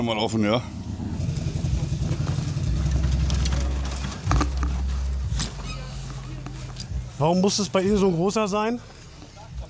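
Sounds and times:
speech: 0.0 - 0.8, 7.2 - 8.9
heavy tractor-unit engine idling: 0.0 - 9.6
metallic clinks and rattles: 1.8 - 7.1.

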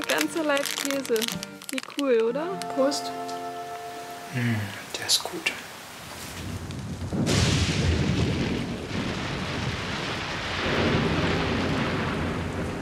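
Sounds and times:
speech: 0.2 - 3.5, 4.3 - 5.7
thunder in the mountains: 6.2 - 12.8.

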